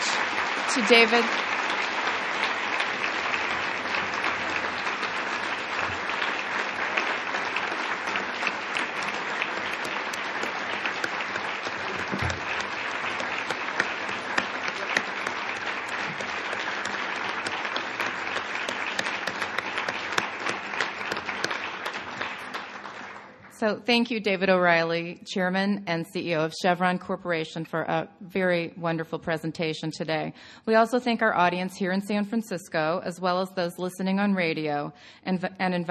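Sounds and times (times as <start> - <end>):
audience applause: 0.0 - 23.5
speech: 0.7 - 1.5, 23.7 - 35.9.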